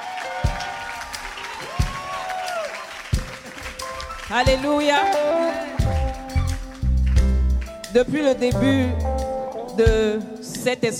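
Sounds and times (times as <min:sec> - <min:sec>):
crowd cheering and whooping: 0:00.0 - 0:04.5
crowd clapping: 0:00.0 - 0:07.9
speech: 0:04.3 - 0:05.7, 0:07.9 - 0:09.1, 0:09.8 - 0:10.9
heavy low thumps: 0:05.8 - 0:07.8, 0:08.5 - 0:09.2.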